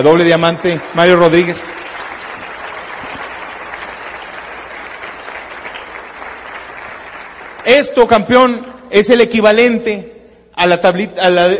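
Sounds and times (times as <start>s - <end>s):
speech: 0.0s - 1.8s, 7.7s - 11.5s
audience applause: 0.0s - 7.8s.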